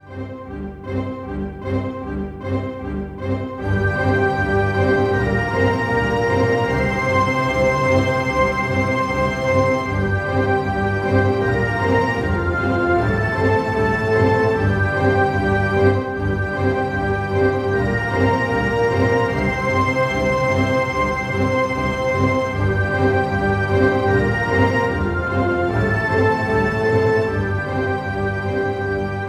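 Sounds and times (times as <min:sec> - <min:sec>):
orchestra transition music in C: 0:00.0 - 0:29.2.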